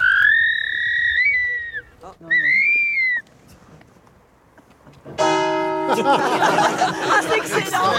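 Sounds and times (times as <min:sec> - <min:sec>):
person imitating barn owl screech: 0:00.0 - 0:03.2
laughter: 0:05.8 - 0:07.9.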